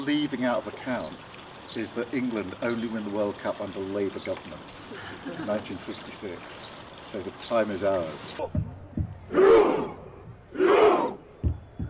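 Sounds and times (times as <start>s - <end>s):
speech: 0.0s - 8.6s
football crowd doing a rhythmic chant roar: 9.3s - 11.2s.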